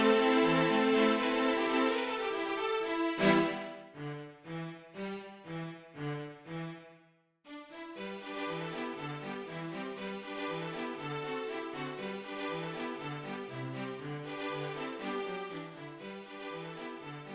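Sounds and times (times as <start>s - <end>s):
ensemble music for viola and other instruments: 0.0s - 4.0s, 8.0s - 17.3s.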